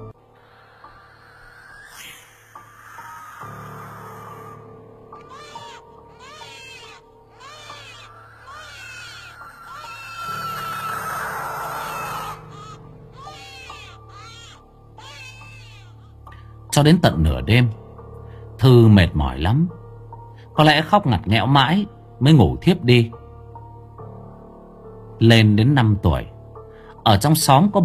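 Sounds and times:
barn owls screeching eerily: 0:00.0 - 0:16.2
speech: 0:16.8 - 0:17.8, 0:18.6 - 0:19.8, 0:20.6 - 0:23.2, 0:25.2 - 0:26.3, 0:27.1 - 0:27.8.

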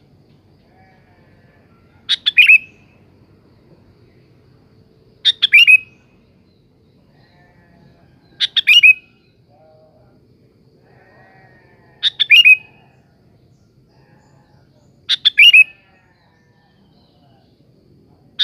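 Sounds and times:
sooty-headed bulbul song phrases: 0:01.8 - 0:03.0, 0:05.2 - 0:10.2, 0:12.0 - 0:18.4.

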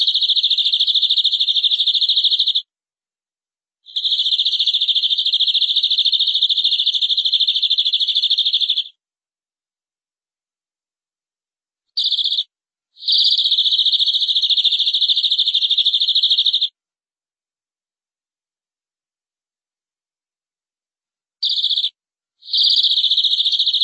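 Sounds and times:
canary trilling: 0:00.0 - 0:02.7, 0:03.9 - 0:08.9, 0:12.0 - 0:16.7, 0:21.4 - 0:23.8.

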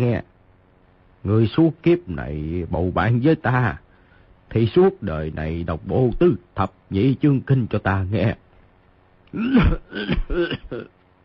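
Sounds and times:
speech: 0:00.0 - 0:00.3, 0:01.2 - 0:03.8, 0:04.5 - 0:08.4, 0:09.3 - 0:11.0
old man coughing violently: 0:09.3 - 0:11.0.

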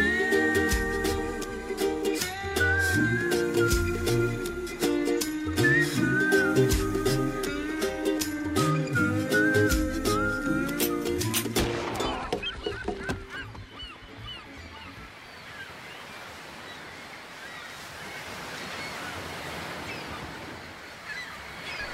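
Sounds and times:
sea waves: 0:00.0 - 0:21.9
bird calls over the surf: 0:10.4 - 0:21.9.

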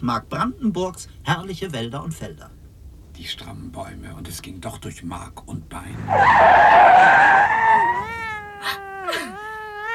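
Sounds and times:
speech: 0:00.0 - 0:02.6, 0:03.2 - 0:08.8
long wavering cat meow: 0:07.7 - 0:09.9.

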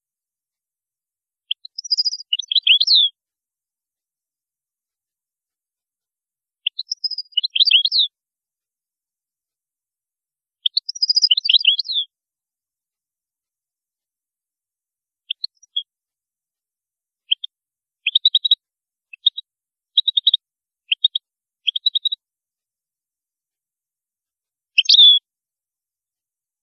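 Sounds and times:
European goldfinch song: 0:01.4 - 0:03.2, 0:06.6 - 0:08.2, 0:10.6 - 0:12.1, 0:15.2 - 0:16.0, 0:17.2 - 0:22.2, 0:24.7 - 0:25.3.

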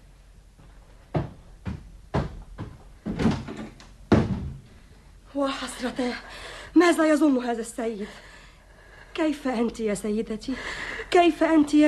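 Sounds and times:
wooden door thumping and rattling as pushed shut: 0:01.2 - 0:04.6
speech: 0:05.4 - 0:08.3, 0:09.2 - 0:11.8.

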